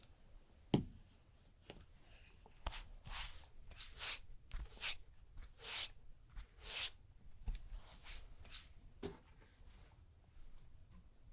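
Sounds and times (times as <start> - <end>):
massage rubbing and brushing strokes: 2.0 - 8.8.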